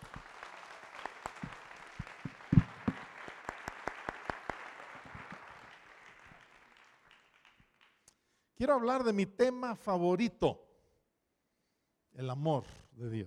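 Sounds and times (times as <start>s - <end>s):
group of people applauding: 0.0s - 8.1s
speech: 8.6s - 10.6s, 12.2s - 13.2s.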